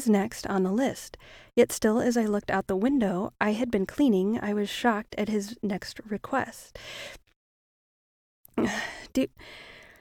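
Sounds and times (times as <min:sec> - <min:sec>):
speech: 0:00.0 - 0:07.2, 0:08.6 - 0:09.7
person breathing into someone's ear: 0:08.8 - 0:09.9.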